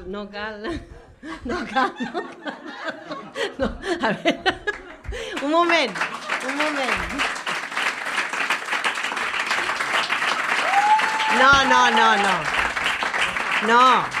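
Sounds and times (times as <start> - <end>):
speech: 0.0 - 7.4, 11.3 - 12.6, 13.6 - 14.1
laughter: 0.6 - 7.8
audience applause: 4.7 - 14.1.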